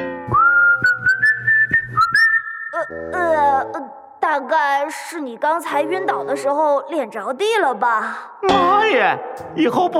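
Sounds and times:
whistling: 0:00.2 - 0:02.8
speech: 0:04.4 - 0:09.9.

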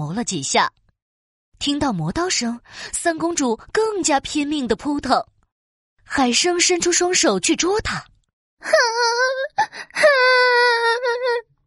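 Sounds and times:
speech: 0:00.2 - 0:00.8, 0:01.6 - 0:05.3, 0:06.1 - 0:11.5
person crying: 0:08.7 - 0:11.4.

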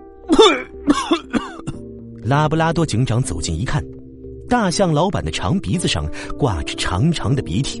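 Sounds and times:
speech: 0:00.3 - 0:01.3, 0:02.3 - 0:07.7
throaty coughing: 0:00.3 - 0:01.9.

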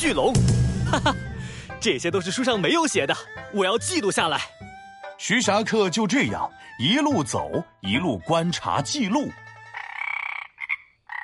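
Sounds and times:
speech: 0:00.0 - 0:04.6, 0:05.2 - 0:09.4
frog croaking: 0:09.3 - 0:11.2.

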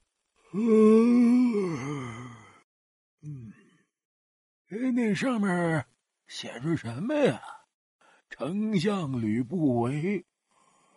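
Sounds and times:
speech: 0:00.5 - 0:01.2, 0:04.7 - 0:07.6, 0:08.3 - 0:10.3
person yawning: 0:00.5 - 0:02.6.

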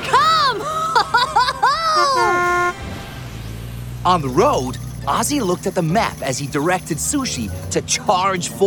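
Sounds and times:
laughter: 0:00.2 - 0:02.6
cartoon truck horn sound effect for a super big truck: 0:01.8 - 0:03.1
speech: 0:04.1 - 0:08.6.

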